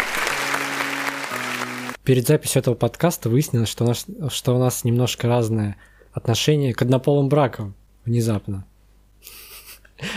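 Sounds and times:
applause sound effect: 0:00.0 - 0:02.0
speech: 0:02.1 - 0:09.4, 0:10.0 - 0:10.1.

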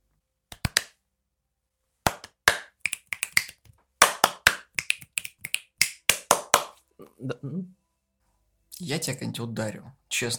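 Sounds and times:
hand clap: 0:00.5 - 0:01.0, 0:02.0 - 0:06.8
speech: 0:07.2 - 0:07.8, 0:08.8 - 0:10.3.

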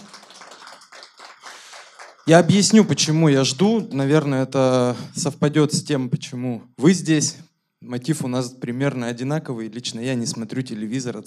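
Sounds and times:
audience applause: 0:00.0 - 0:03.0
speech: 0:02.3 - 0:11.2.

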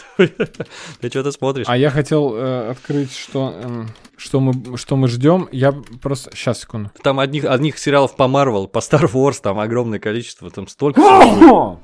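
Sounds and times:
laughter: 0:00.0 - 0:00.9
speech: 0:00.2 - 0:11.8
sneeze: 0:11.0 - 0:11.7.

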